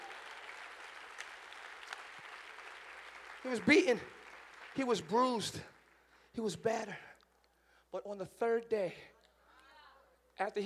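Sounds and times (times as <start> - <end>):
audience clapping hands: 0.0 - 6.2
speech: 3.4 - 4.2, 4.8 - 5.7, 6.3 - 7.1, 7.9 - 9.1, 10.4 - 10.6.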